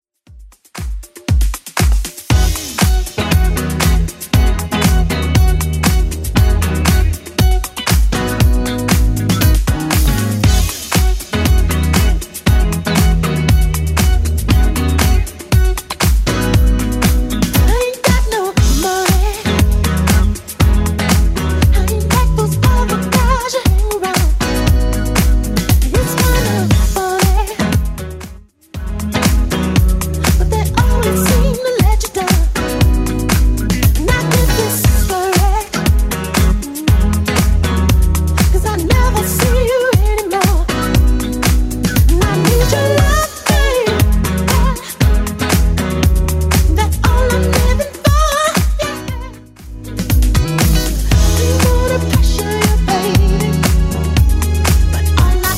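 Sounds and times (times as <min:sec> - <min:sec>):
1970s club edit dance music at 118 bpm: 0:00.3 - 0:55.5.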